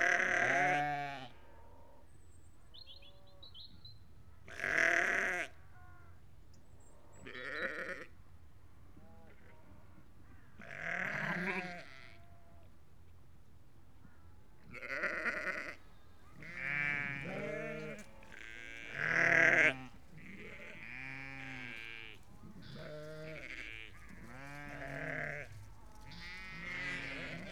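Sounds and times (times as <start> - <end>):
sheep bleating: 0.0 - 1.3, 4.5 - 5.5, 7.3 - 8.1, 10.6 - 12.2, 14.7 - 27.5.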